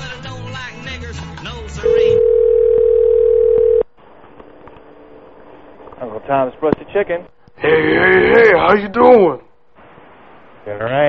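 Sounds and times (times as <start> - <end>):
telephone ringing tone: 1.8 - 3.9
speech: 6.3 - 9.4, 10.6 - 11.0.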